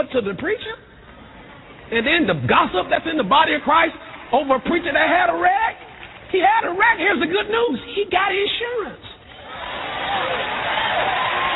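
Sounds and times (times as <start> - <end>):
speech: 0.0 - 0.9, 1.9 - 9.1
audience clapping hands: 3.6 - 6.5, 9.5 - 11.5.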